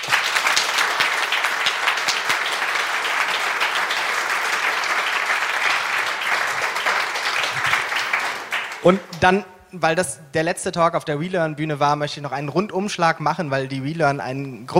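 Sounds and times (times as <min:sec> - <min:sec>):
loud audience applause: 0:00.0 - 0:09.2
speech: 0:08.8 - 0:14.7.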